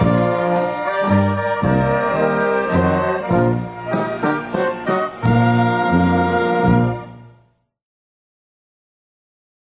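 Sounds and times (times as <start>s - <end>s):
waltz music: 0.0s - 7.6s.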